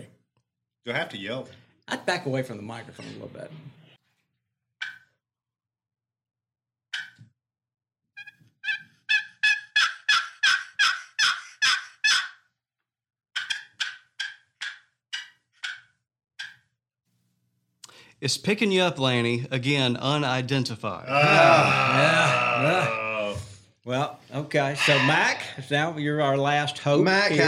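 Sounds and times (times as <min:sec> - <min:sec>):
speech: 0:00.8 - 0:03.8, 0:18.2 - 0:23.0, 0:23.8 - 0:27.4
raspy turkey yelps on a box call: 0:08.2 - 0:12.4, 0:13.4 - 0:15.8, 0:24.8 - 0:25.4.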